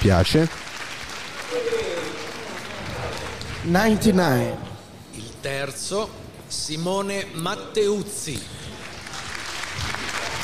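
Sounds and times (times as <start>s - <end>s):
speech: 0.0s - 0.7s, 3.6s - 8.6s
audience clapping at a music audition: 0.0s - 4.4s, 8.3s - 10.4s.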